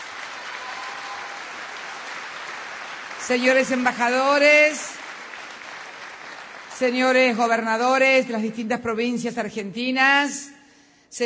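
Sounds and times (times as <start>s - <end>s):
audience applause at an official ceremony: 0.0s - 7.1s
speech: 3.2s - 5.0s, 6.8s - 11.2s.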